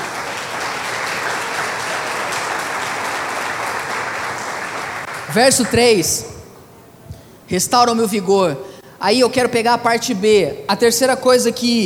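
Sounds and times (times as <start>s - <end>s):
audience applause: 0.0s - 6.2s
speech: 5.3s - 6.3s, 7.5s - 11.8s.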